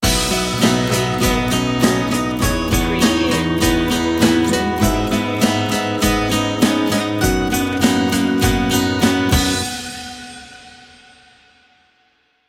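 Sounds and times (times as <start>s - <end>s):
music sting: 0.0s - 11.7s.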